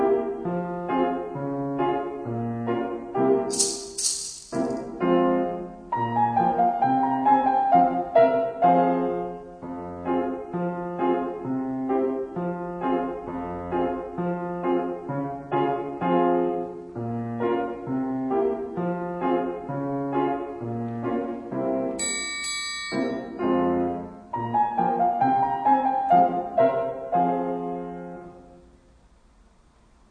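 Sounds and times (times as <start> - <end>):
instrumental music: 0.0 - 28.7.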